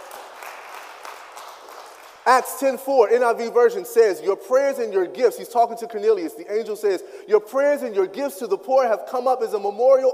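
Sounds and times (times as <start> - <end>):
audience clapping: 0.0 - 2.6
speech: 2.3 - 10.1.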